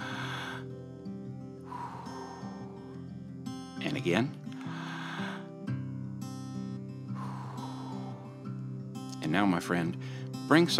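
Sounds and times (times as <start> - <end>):
deep breath during a guided prayer: 0.0 - 3.8, 4.5 - 9.1, 10.0 - 10.4
speech: 3.8 - 4.5, 9.3 - 10.7.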